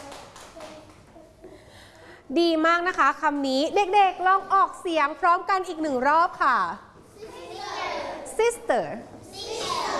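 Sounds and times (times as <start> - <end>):
children clapping hands: 0.0 - 1.2
speech: 2.3 - 6.9, 8.4 - 9.2.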